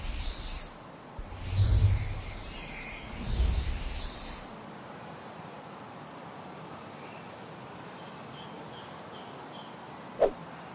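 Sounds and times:
flying broom sweeping past in rushing whooshes: 1.2s - 4.5s.

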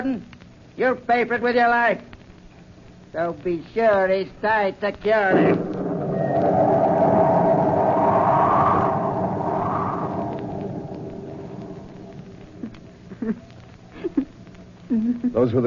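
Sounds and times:
speech: 0.0s - 2.2s, 3.1s - 5.7s, 15.4s - 15.6s
storm wind howling through ship rigging: 5.3s - 13.1s.

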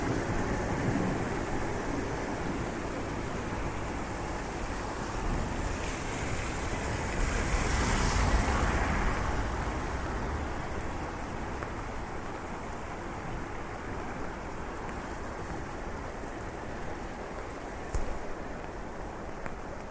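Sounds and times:
rain falling steadily on a street: 0.0s - 19.9s.

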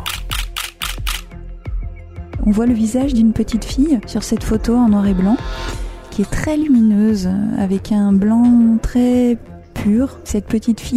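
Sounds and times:
camera shutter clicks: 0.0s - 1.3s
speech: 2.5s - 10.9s
low hum: 3.2s - 7.7s.

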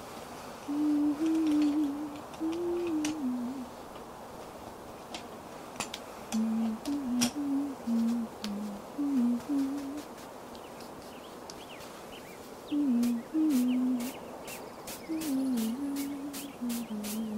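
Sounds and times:
steady soft hiss: 0.0s - 17.3s
faint bird calls outdoors: 0.7s - 3.7s, 6.3s - 17.3s
low smooth voice murmuring: 0.7s - 3.7s, 6.4s - 10.1s, 12.7s - 14.2s, 15.1s - 17.3s.

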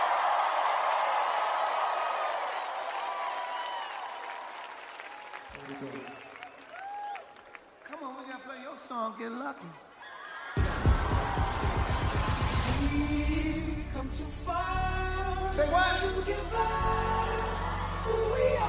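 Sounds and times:
concert audience in New York City applauding and cheering: 0.0s - 8.9s, 9.9s - 13.3s, 17.0s - 18.6s
speech: 5.6s - 6.3s, 8.0s - 9.9s, 12.8s - 17.4s.

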